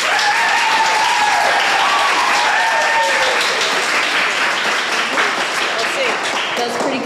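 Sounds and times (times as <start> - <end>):
people whooping and cheering: 0.0 - 4.3
audience applause: 0.0 - 7.0.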